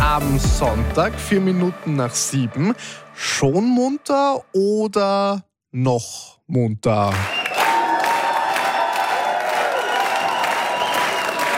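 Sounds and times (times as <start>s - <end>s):
speech: 0.2s - 7.4s
applause: 7.1s - 11.5s
cheering: 7.1s - 11.5s.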